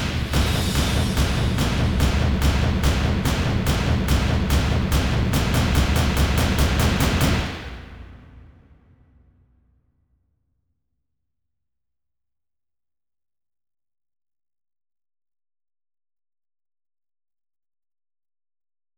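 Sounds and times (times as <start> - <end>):
percussion: 0.0 - 8.5.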